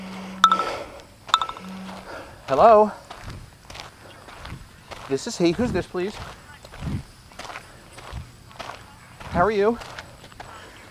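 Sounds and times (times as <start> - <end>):
speech: 2.5 - 3.0, 5.1 - 7.0, 9.4 - 10.0
footsteps of a person running: 3.1 - 10.8.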